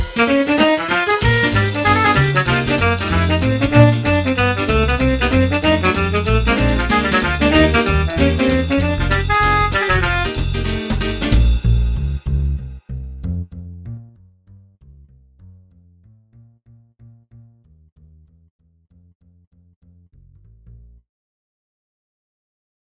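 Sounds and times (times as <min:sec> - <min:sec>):
boogie beat: 0:00.0 - 0:12.6.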